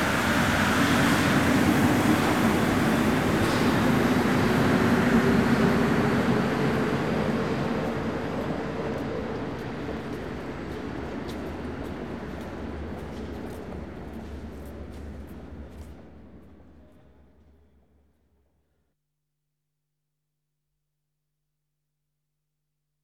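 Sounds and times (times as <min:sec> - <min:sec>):
rubber-tyred metro train at a platform in France: 0:00.0 - 0:18.8.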